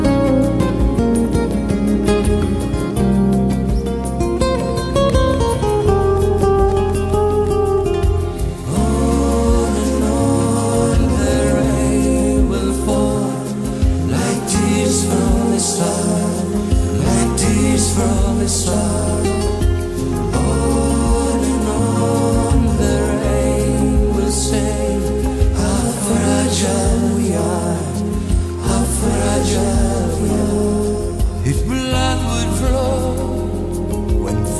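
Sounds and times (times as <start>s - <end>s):
lead guitar: 0.0s - 34.5s
background vocals: 8.0s - 34.5s.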